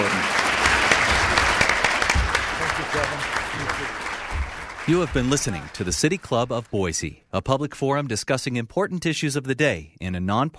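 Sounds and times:
audience applause for candidates: 0:00.0 - 0:06.7
speech: 0:04.9 - 0:10.5.

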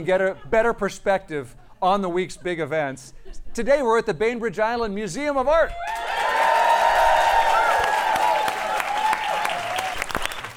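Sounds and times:
speech: 0:00.0 - 0:06.3
live audience clapping at the Bainbridge Island Museum of Art: 0:05.9 - 0:10.5.

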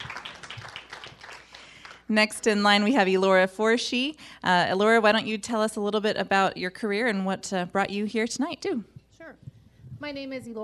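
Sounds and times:
audience applause: 0:00.0 - 0:02.1
speech: 0:02.1 - 0:10.6.

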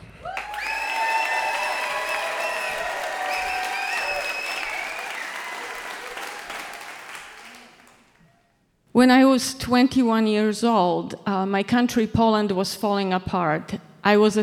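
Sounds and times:
crowd applause: 0:00.0 - 0:08.3
speech: 0:09.0 - 0:14.4.

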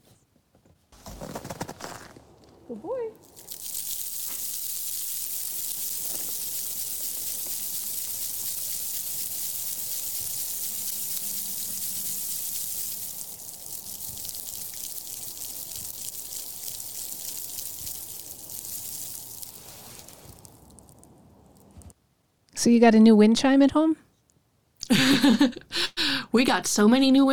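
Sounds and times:
ice cracking: 0:01.0 - 0:21.7
speech: 0:02.7 - 0:03.5, 0:22.6 - 0:24.0, 0:26.3 - 0:27.3
ice-covered shrub being shaken: 0:03.2 - 0:21.0
laughter: 0:24.8 - 0:26.3.

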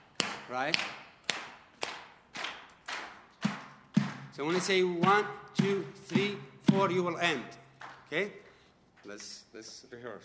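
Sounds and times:
audience clapping in unison on cue: 0:00.0 - 0:06.9, 0:07.7 - 0:08.1
speech: 0:00.5 - 0:01.0, 0:04.4 - 0:08.4, 0:09.0 - 0:10.2.

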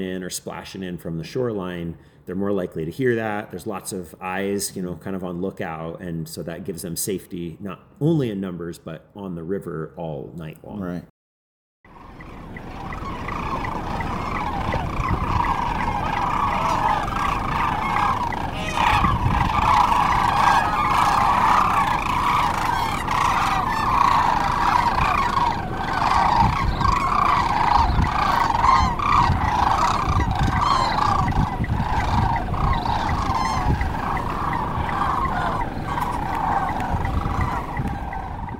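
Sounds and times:
speech: 0:00.0 - 0:11.1
huge flock of sandhill cranes calling: 0:11.9 - 0:38.5.

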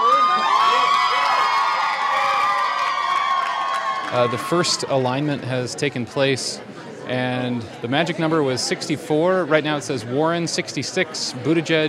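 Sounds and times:
crowd of Warren supporters erupting in cheers: 0:00.0 - 0:05.5
speech: 0:04.1 - 0:11.8.

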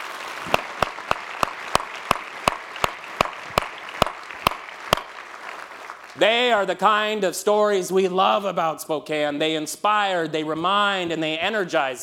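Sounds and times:
audience applause: 0:00.0 - 0:06.7
speech: 0:06.2 - 0:12.0.

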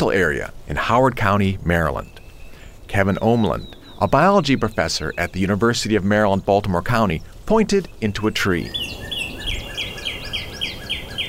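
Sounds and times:
speech: 0:00.0 - 0:02.2, 0:02.9 - 0:09.0
female northern cardinal singing at the Middle Patuxent Environmental Area in Howard County Maryland: 0:00.0 - 0:11.2
hiss: 0:00.0 - 0:11.2.

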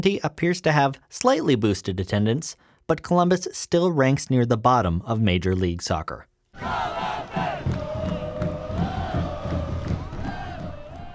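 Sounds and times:
speech: 0:00.0 - 0:07.8
soccer fans cheering at a Columbus Crew home game: 0:06.6 - 0:11.1.

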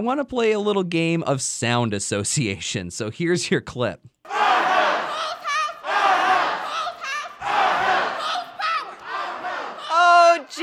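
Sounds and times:
speech: 0:00.0 - 0:04.6
protesters shouting and chanting in the state capitol rotunda and galleries: 0:04.3 - 0:10.6.

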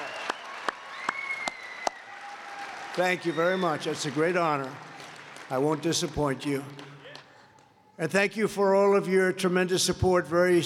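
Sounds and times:
applause hand claps: 0:00.0 - 0:03.1, 0:03.8 - 0:07.7
speech: 0:03.0 - 0:04.9, 0:05.5 - 0:06.9, 0:08.0 - 0:10.6.

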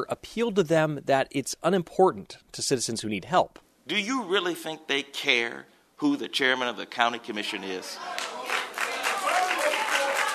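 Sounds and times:
speech: 0:00.0 - 0:08.4
crowd clapping at a county commission meeting: 0:08.0 - 0:10.3.

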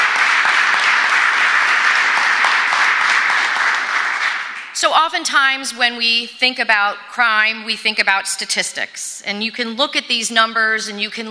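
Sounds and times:
audience applause: 0:00.0 - 0:04.8
speech: 0:04.8 - 0:11.2.

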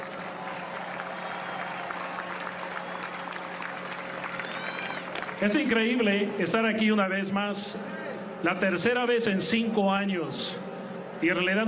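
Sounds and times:
round of applause: 0:00.0 - 0:06.2
speech: 0:05.4 - 0:11.6.

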